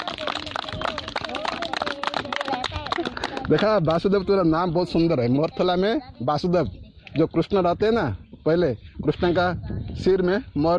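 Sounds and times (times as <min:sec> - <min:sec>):
group clapping hands: 0:00.0 - 0:04.1
voices chattering: 0:00.0 - 0:10.7
speech: 0:03.5 - 0:10.7.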